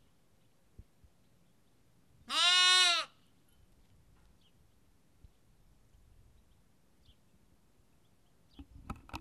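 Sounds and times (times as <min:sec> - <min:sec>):
sheep lamb bleating in Kakopetria Cyprus: 0:02.3 - 0:03.1.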